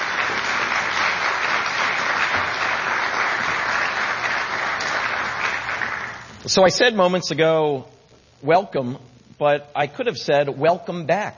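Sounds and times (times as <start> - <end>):
crowd applauding: 0.0 - 6.4
speech: 6.5 - 11.3.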